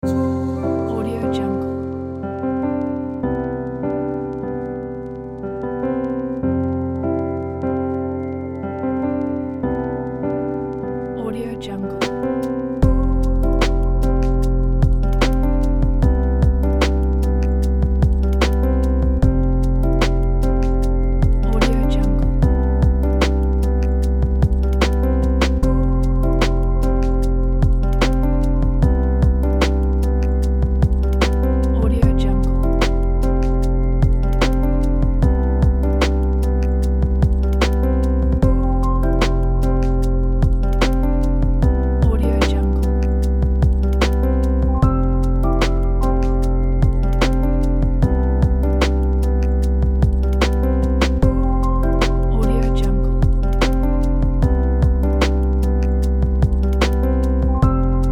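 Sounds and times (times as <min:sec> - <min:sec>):
ambient lofi lifestyle music: 0:00.0 - 0:58.1.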